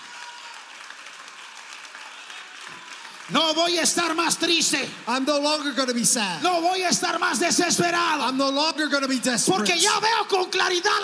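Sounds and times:
audience clapping: 0:00.0 - 0:08.4
speech: 0:03.3 - 0:11.0.

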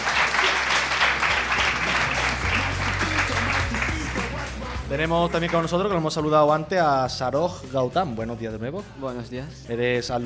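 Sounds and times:
applause: 0:00.0 - 0:05.7
speech: 0:04.9 - 0:10.2.

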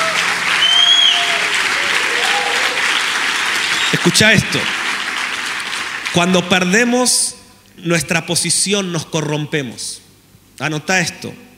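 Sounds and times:
audience applause: 0:00.0 - 0:06.7
speech: 0:03.9 - 0:04.8, 0:06.1 - 0:10.0, 0:10.6 - 0:11.5.

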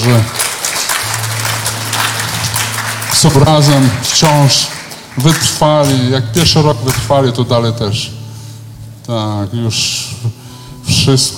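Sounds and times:
audience applause: 0:00.0 - 0:06.1
speech: 0:00.1 - 0:00.4, 0:03.2 - 0:08.2, 0:09.1 - 0:10.4, 0:11.0 - 0:11.3.

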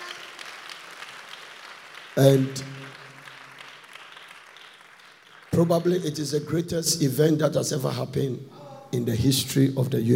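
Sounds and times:
audience clapping: 0:00.0 - 0:06.8
speech: 0:02.2 - 0:02.7, 0:05.6 - 0:10.1.

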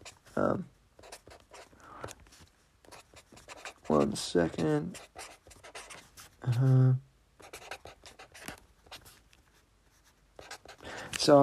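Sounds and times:
pen scratching on paper as notes are written by hand: 0:00.0 - 0:00.4, 0:01.0 - 0:06.7, 0:07.4 - 0:10.8
speech: 0:00.4 - 0:00.8, 0:04.0 - 0:05.3, 0:06.4 - 0:07.0, 0:11.2 - 0:11.4.

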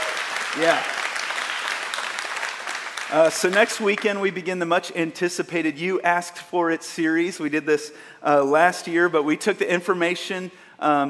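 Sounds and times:
audience clapping for pastor: 0:00.0 - 0:04.5
speech: 0:00.6 - 0:01.0, 0:03.1 - 0:11.0.

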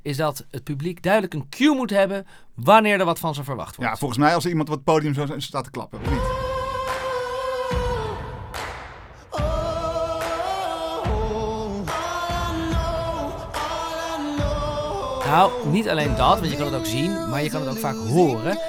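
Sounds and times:
speech: 0:00.0 - 0:06.4, 0:15.3 - 0:18.6
boom-clap drum beat: 0:06.1 - 0:17.4.

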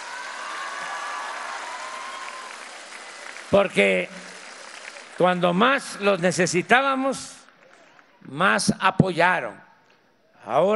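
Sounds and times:
audience applause: 0:00.0 - 0:06.3
speech: 0:03.5 - 0:04.3, 0:05.2 - 0:07.4, 0:08.2 - 0:09.7, 0:10.4 - 0:10.7.

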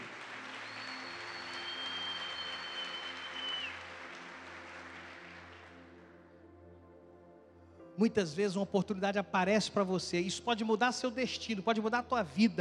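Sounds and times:
audience applause: 0:00.0 - 0:06.0
speech: 0:08.0 - 0:12.5.

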